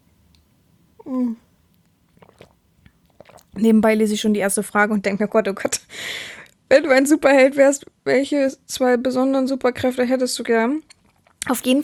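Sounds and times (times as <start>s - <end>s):
speech: 1.0s - 1.4s, 3.6s - 11.8s
faint clicks and soft mouth noises: 1.0s - 4.5s
slurping sip of coffee: 2.0s - 4.4s.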